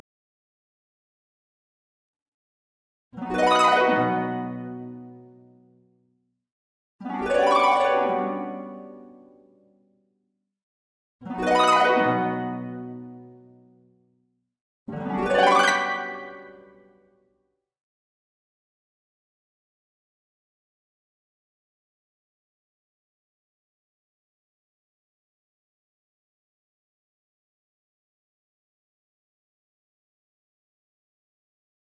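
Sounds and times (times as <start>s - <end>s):
harp: 3.2s - 5.2s, 7.1s - 9.4s, 11.3s - 13.2s, 14.9s - 16.9s.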